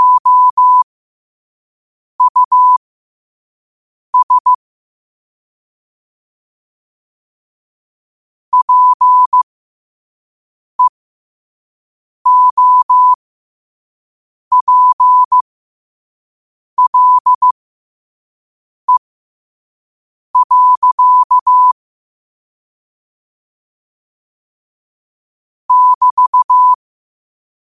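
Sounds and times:
morse code at 5 wpm: 0:00.0 - 0:00.8, 0:02.2 - 0:02.8, 0:04.2 - 0:04.6, 0:08.5 - 0:09.4, 0:12.3 - 0:13.2, 0:14.5 - 0:15.4, 0:16.8 - 0:17.6, 0:20.4 - 0:21.8, 0:25.7 - 0:26.8.

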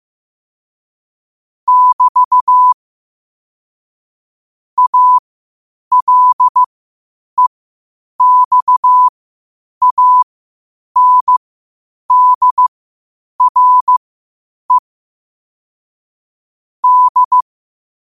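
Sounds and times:
morse code at 5 wpm: 0:01.7 - 0:02.8, 0:04.8 - 0:05.2, 0:05.9 - 0:06.7, 0:08.2 - 0:09.1, 0:09.8 - 0:10.3, 0:11.0 - 0:11.4, 0:12.1 - 0:12.7, 0:13.4 - 0:14.0, 0:16.8 - 0:17.4.

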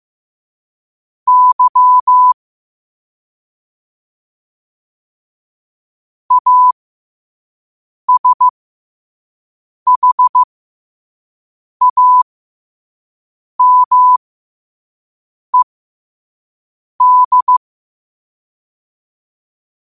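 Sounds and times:
morse code at 5 wpm: 0:01.3 - 0:02.4, 0:06.3 - 0:06.8, 0:08.1 - 0:08.5, 0:09.9 - 0:10.5, 0:11.8 - 0:12.2, 0:13.6 - 0:14.2, 0:17.0 - 0:17.6.

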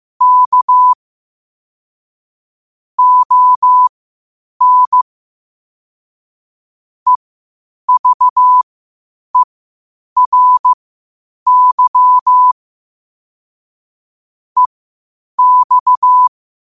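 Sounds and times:
morse code at 5 wpm: 0:00.2 - 0:01.0, 0:03.0 - 0:03.9, 0:04.6 - 0:05.0, 0:07.9 - 0:08.6, 0:10.2 - 0:10.8, 0:11.5 - 0:12.6, 0:15.4 - 0:16.3.

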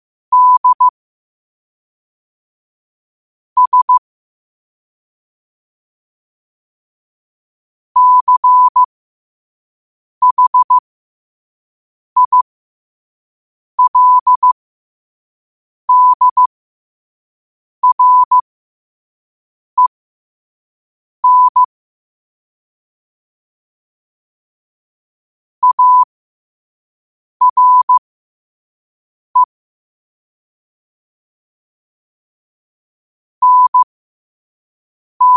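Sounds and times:
morse code at 5 wpm: 0:00.3 - 0:00.9, 0:03.6 - 0:04.0, 0:08.0 - 0:08.9, 0:10.2 - 0:10.8, 0:12.2 - 0:12.4, 0:13.8 - 0:14.6, 0:15.9 - 0:16.5, 0:17.8 - 0:18.4, 0:21.2 - 0:21.7, 0:25.6 - 0:26.1, 0:27.4 - 0:28.0, 0:33.4 - 0:33.9, 0:35.2 - 0:35.3.

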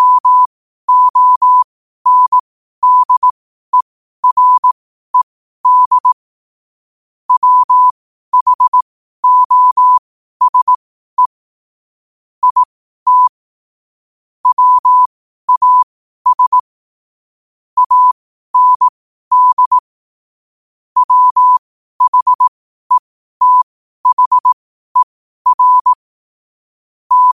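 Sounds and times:
morse code at 5 wpm: 0:00.0 - 0:04.8, 0:05.6 - 0:06.2, 0:07.4 - 0:10.8, 0:12.4 - 0:13.3, 0:14.4 - 0:16.6, 0:17.8 - 0:19.8, 0:21.0 - 0:26.0, 0:27.1 - 0:27.3.

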